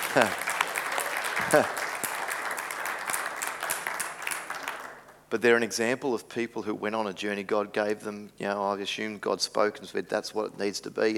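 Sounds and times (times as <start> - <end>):
audience applause: 0.0 - 5.1
speech: 0.2 - 0.4, 1.4 - 1.8, 5.3 - 11.1.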